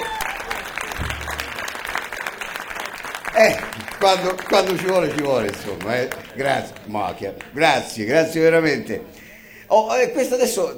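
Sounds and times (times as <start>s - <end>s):
studio audience applause: 0.0s - 9.6s
laughter: 0.0s - 10.7s
speech: 3.4s - 10.7s.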